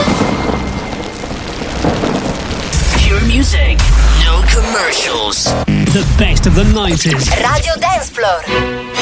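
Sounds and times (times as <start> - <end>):
low rumbles of thunder: 0.0 - 5.4
heavy rain pouring down: 0.0 - 5.6
speech: 3.4 - 8.9.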